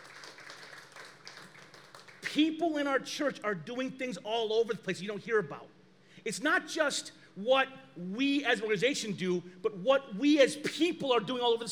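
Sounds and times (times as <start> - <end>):
hand clap: 0.0 - 2.4
speech: 2.3 - 11.7.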